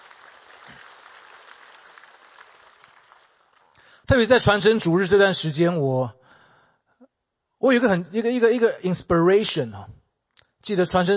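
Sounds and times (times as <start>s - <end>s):
audience clapping hands: 0.0s - 4.0s
speech: 4.1s - 6.2s, 7.6s - 10.0s, 10.6s - 11.1s.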